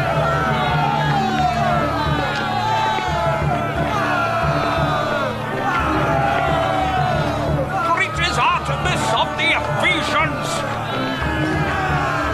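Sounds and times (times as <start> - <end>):
furious crowd shouting: 0.0 - 12.3.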